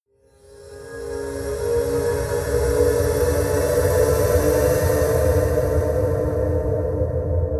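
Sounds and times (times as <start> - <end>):
rising UFO sound: 0.3 - 7.4.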